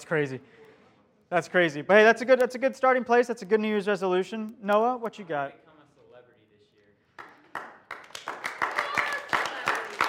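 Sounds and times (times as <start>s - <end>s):
speech: 0.0s - 0.7s, 1.3s - 5.6s
applause: 7.2s - 10.0s.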